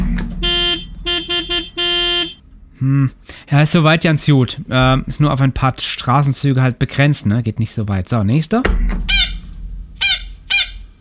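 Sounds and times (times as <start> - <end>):
warning siren being tested: 0.4 - 2.4
speech: 2.8 - 9.3.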